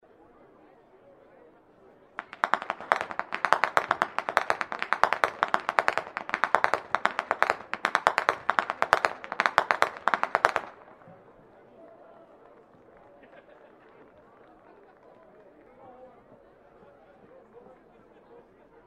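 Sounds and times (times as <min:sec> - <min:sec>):
youth whip cracking: 0:02.2 - 0:10.9.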